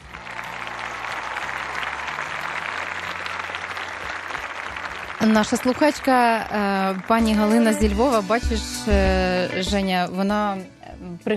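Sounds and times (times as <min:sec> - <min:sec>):
stormy applause: 0:00.0 - 0:08.1
speech: 0:05.2 - 0:11.3.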